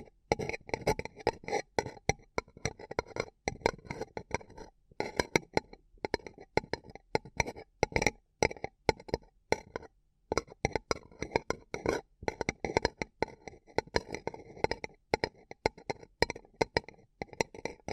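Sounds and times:
tapping, crinkling and scratching on a paper cup: 0.0s - 17.9s.

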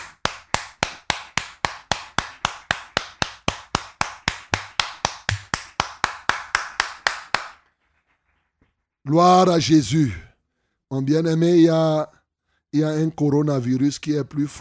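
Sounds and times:
audience clapping in acclamation: 0.0s - 7.6s
speech: 9.1s - 10.2s, 10.9s - 14.5s.

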